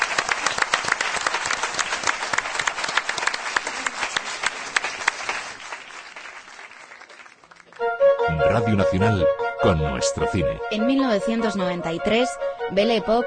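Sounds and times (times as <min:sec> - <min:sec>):
applause: 0:00.0 - 0:07.9
speech: 0:08.6 - 0:13.2.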